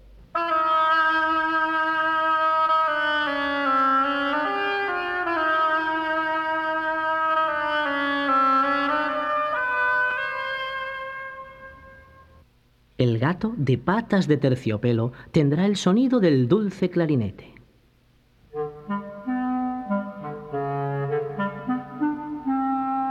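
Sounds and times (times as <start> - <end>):
melancholy solo oboe melody: 0.4 - 12.4, 18.5 - 23.0
speech: 13.2 - 17.5.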